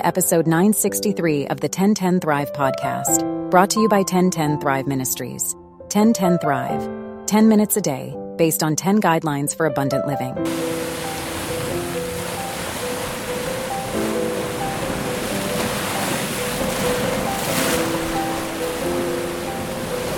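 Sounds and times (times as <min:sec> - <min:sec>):
speech: 0:00.0 - 0:10.9
ocean waves crashing against the shore: 0:10.5 - 0:20.1.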